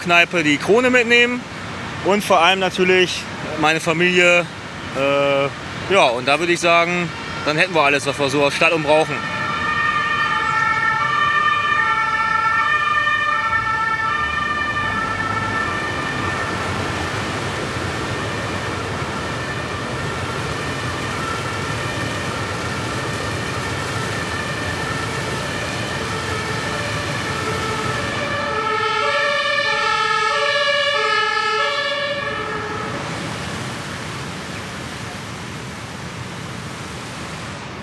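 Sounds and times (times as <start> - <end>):
speech: 0.0 - 9.3
rumbling traffic: 0.0 - 37.8
fire engine siren: 5.0 - 35.0.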